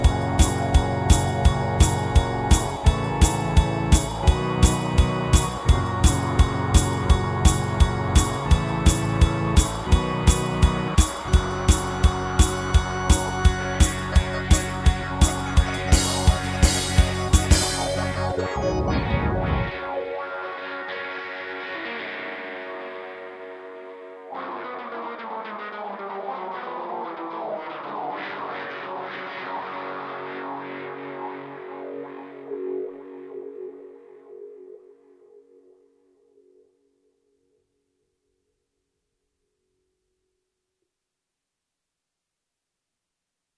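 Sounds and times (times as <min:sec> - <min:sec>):
instrumental music: 0:00.0 - 0:34.1.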